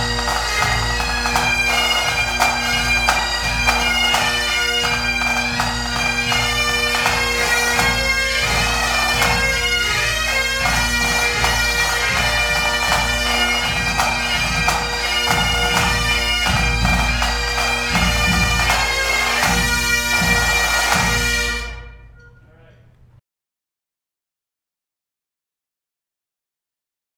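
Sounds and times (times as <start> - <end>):
pipe band playing: 0.0 - 22.2.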